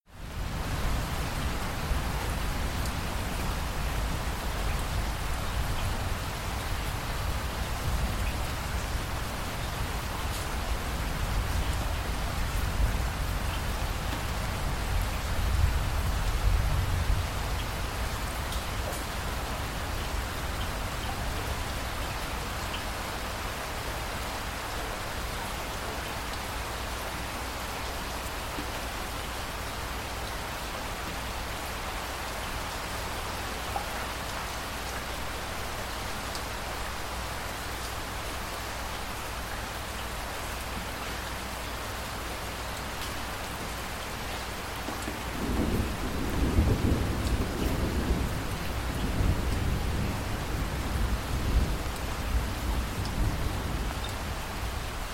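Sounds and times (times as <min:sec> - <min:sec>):
rain in Chicago: 0:00.0 - 0:55.1.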